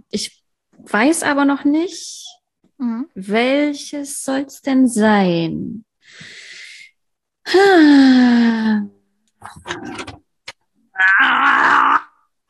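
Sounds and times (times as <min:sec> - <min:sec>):
speech: 0:00.1 - 0:06.4, 0:07.4 - 0:10.2
person groaning while straining to open a pickle jar: 0:11.0 - 0:12.4.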